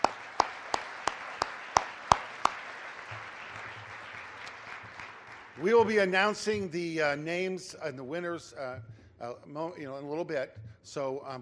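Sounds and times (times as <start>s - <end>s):
sharp evenly spaced hand claps: 0.0s - 6.7s
faint hiss: 0.0s - 11.4s
speech: 5.6s - 11.4s.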